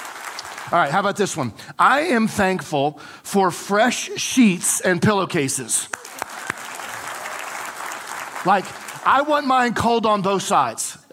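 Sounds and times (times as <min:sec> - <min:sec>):
audience applause: 0:00.0 - 0:01.0, 0:05.9 - 0:09.4
speech: 0:00.7 - 0:06.0, 0:08.4 - 0:11.1.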